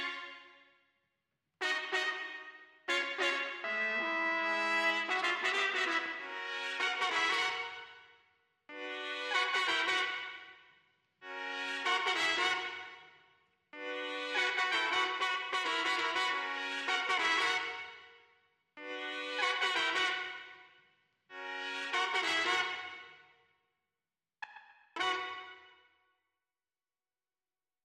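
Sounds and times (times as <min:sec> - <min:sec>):
trumpets: 0:01.6 - 0:08.0, 0:08.7 - 0:10.5, 0:11.3 - 0:13.0, 0:13.8 - 0:18.1, 0:18.8 - 0:20.6, 0:21.4 - 0:23.2, 0:25.0 - 0:25.7.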